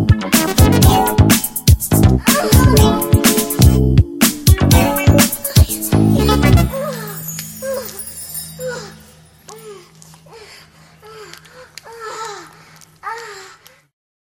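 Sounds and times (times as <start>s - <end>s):
groove music: 0.0s - 7.6s.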